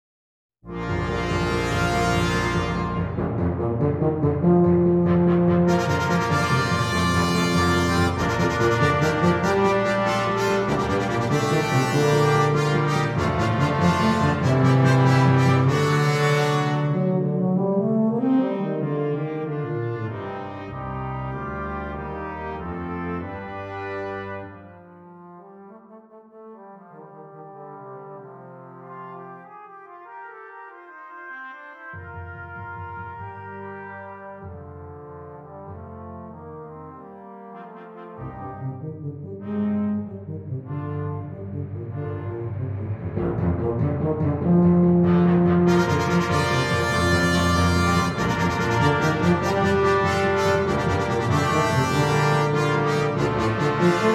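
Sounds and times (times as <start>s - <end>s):
tuba playing marcato: 0.7s - 54.1s.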